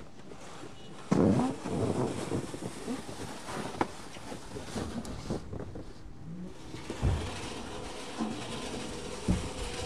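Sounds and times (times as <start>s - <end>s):
snow being cleared, rumbling scrape: 1.1s - 3.8s, 6.6s - 9.8s
heavier thuds and bursts: 6.8s - 9.8s.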